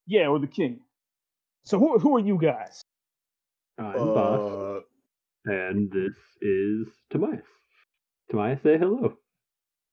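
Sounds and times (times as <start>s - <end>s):
speech: 0.1s - 0.9s, 1.6s - 2.9s, 3.8s - 7.6s, 8.3s - 9.2s
person imitating a deep growling roar: 4.0s - 4.9s.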